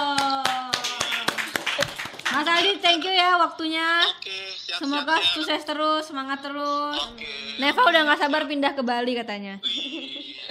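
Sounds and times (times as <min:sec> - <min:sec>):
hands clapping: 0:00.0 - 0:03.4
speech: 0:02.6 - 0:09.8
laughter: 0:09.6 - 0:10.4.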